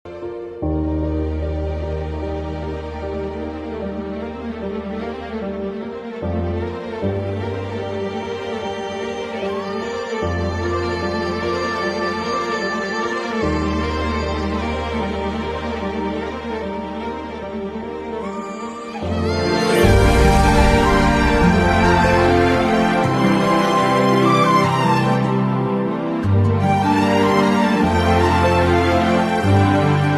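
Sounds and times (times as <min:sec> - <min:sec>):
background music: 0:00.1 - 0:30.1.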